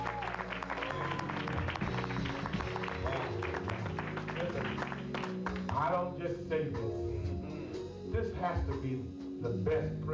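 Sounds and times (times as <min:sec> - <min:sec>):
applause for the orchestra: 0:00.0 - 0:05.8
speech: 0:06.2 - 0:07.1, 0:08.1 - 0:10.1.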